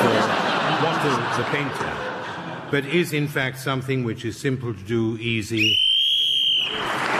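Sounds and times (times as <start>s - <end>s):
laughter: 0.0s - 3.0s
speech: 1.0s - 1.9s, 2.7s - 5.8s
whistle blown: 5.6s - 7.0s.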